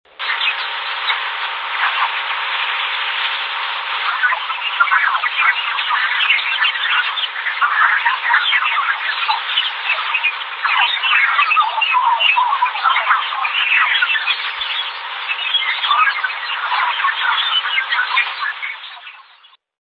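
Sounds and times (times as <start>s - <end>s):
aurora space noise: 0.1s - 19.4s.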